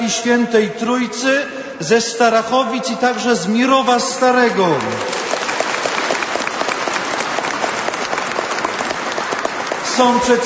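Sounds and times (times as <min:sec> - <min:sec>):
speech: 0:00.1 - 0:05.2, 0:10.0 - 0:10.4
audience applause: 0:04.7 - 0:10.4.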